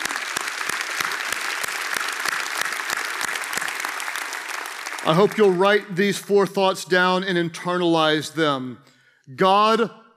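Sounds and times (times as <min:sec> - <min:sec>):
audience applause: 0:00.0 - 0:06.0
speech: 0:05.1 - 0:10.0.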